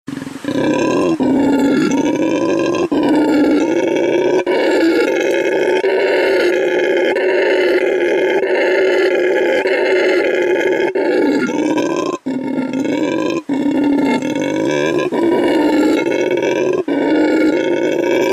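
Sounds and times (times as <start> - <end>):
red howler monkey giving a guttural roar: 0.1 - 18.3.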